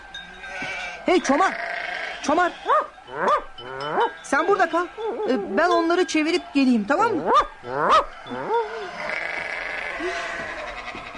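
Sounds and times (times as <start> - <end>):
sheep flock bleating: 0.4 - 5.2, 7.7 - 11.1
speech: 1.0 - 9.2, 10.0 - 10.4.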